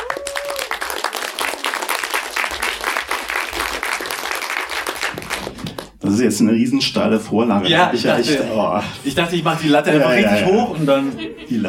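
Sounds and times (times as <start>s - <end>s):
large crowd applauding: 0.0s - 6.0s
speech: 6.1s - 11.6s
laughter: 10.1s - 11.6s.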